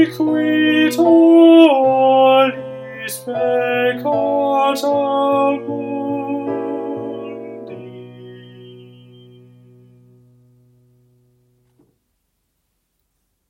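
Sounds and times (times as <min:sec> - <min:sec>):
tenor singing: 0:00.0 - 0:09.6.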